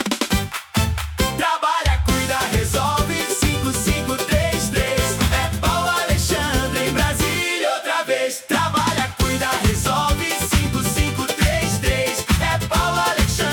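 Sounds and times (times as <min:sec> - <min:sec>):
campaign jingle chorus: 0:01.2 - 0:13.5.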